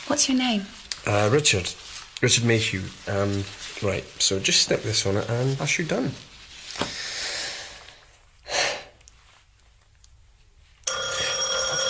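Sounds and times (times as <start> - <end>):
speech: 0.1 - 7.0
doorbell ringing: 10.9 - 11.8.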